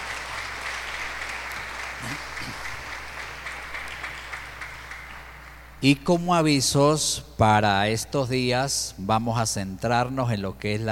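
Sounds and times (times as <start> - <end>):
audience applauding in church: 0.0 - 5.8
speech: 2.0 - 2.7, 5.8 - 10.9.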